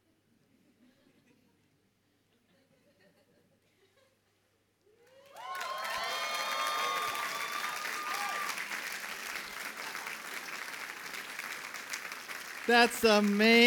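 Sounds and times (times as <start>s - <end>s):
audience applause: 5.3s - 13.6s
speech: 12.7s - 13.6s.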